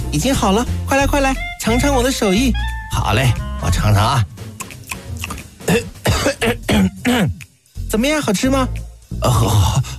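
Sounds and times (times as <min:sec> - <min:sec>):
speech: 0:00.1 - 0:04.3, 0:07.9 - 0:09.9
person coughing after tasting food: 0:05.6 - 0:07.4.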